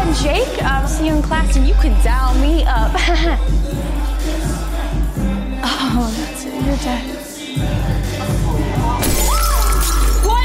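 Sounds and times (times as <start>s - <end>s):
speech: 0.2s - 4.6s, 6.0s - 9.4s
glass shattering: 9.0s - 10.4s.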